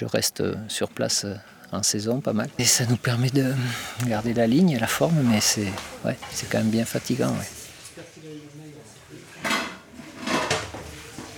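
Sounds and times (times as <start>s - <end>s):
speech: 0.0s - 8.1s
dishes and cookware clattering in a restaurant kitchen: 4.9s - 7.8s, 9.3s - 11.3s.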